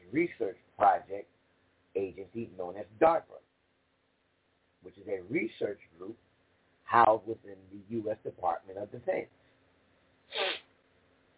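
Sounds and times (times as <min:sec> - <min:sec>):
speech: 0:00.1 - 0:01.4, 0:02.0 - 0:03.5, 0:04.8 - 0:06.3, 0:06.9 - 0:09.4
sniffling: 0:10.3 - 0:10.6.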